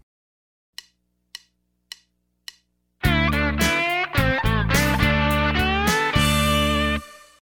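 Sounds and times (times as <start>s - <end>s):
country rock music: 3.0s - 7.3s.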